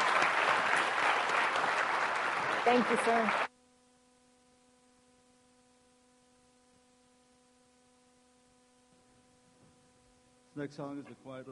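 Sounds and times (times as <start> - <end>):
audience applause: 0.0 - 3.5
speech: 2.6 - 3.4, 10.6 - 11.5.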